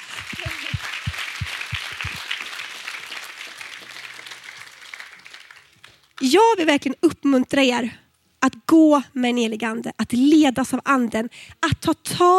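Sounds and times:
audience applause: 0.0 - 6.2
speech: 6.2 - 12.3.

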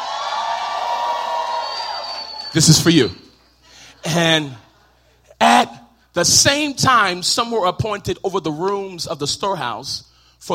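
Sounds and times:
audience cheering and whooping at a live gathering: 0.0 - 3.2
speech: 2.5 - 3.2, 4.0 - 4.6, 5.6 - 10.5.

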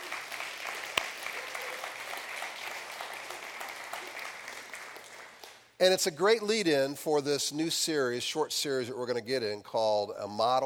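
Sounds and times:
crowd applause: 0.0 - 5.6
speech: 5.8 - 10.6.

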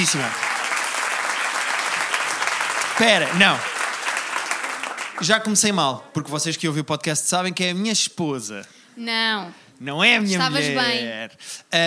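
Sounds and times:
speech: 0.0 - 0.5, 3.0 - 3.7, 5.2 - 11.8
audience applause: 0.0 - 6.0.

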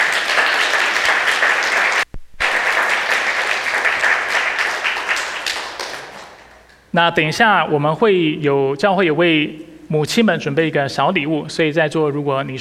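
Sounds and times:
applause: 0.0 - 6.7
speech: 6.9 - 12.6.

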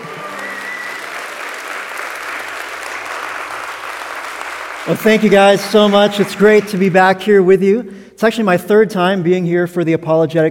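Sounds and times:
audience applause welcoming a guest speaker at a church apologetics event: 0.0 - 7.0
speech: 4.9 - 10.4.

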